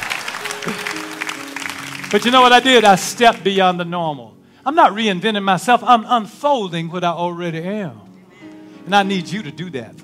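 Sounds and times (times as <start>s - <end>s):
audience clapping: 0.0s - 3.7s
speech: 2.1s - 8.0s, 8.8s - 10.0s.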